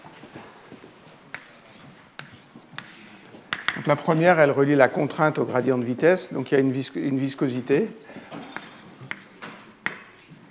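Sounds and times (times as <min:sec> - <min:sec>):
chalk writing equations on a blackboard: 0:01.3 - 0:03.8, 0:08.5 - 0:10.4
speech: 0:03.8 - 0:08.2.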